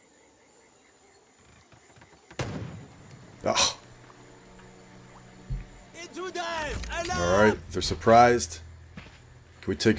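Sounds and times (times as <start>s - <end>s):
gunshot from a long-range stealth kill in Jagged Alliance 3: 2.4s - 2.9s
speech: 3.4s - 3.8s, 7.0s - 8.6s, 9.7s - 9.9s.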